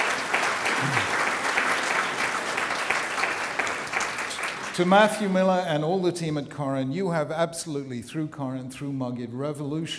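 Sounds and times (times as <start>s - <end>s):
audience applause: 0.0s - 5.3s
speech: 4.8s - 9.9s.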